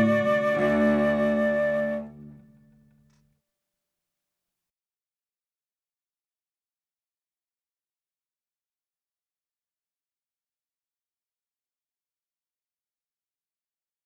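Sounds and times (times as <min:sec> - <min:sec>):
trumpet piece: 0:00.0 - 0:02.4.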